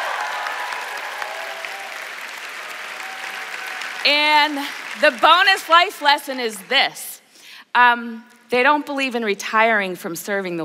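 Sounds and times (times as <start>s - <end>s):
audience applause and cheering: 0.0s - 6.7s
speech: 4.1s - 7.1s, 7.7s - 10.6s.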